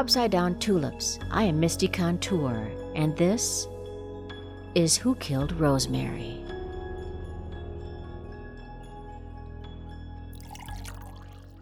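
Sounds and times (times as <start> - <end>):
speech: 0.0 - 3.7, 4.7 - 6.4
coffee being poured into a cup: 10.4 - 11.6.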